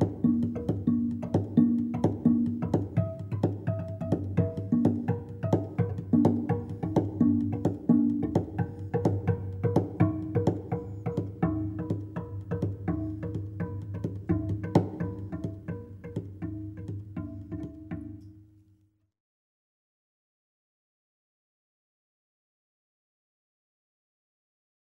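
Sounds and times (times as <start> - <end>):
tambura: 0.0 - 18.6.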